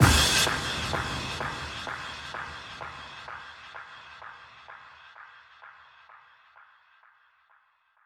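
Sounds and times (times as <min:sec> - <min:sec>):
impact sound effect: 0:00.0 - 0:03.2.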